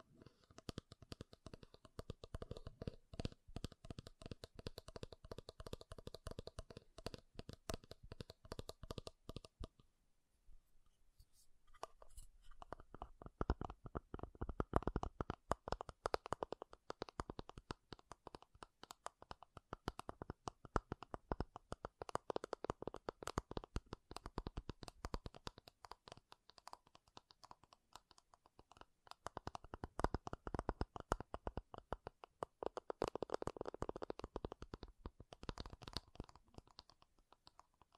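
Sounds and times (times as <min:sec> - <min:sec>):
makeup tapping and scratching: 0:00.5 - 0:09.8, 0:11.3 - 0:37.9.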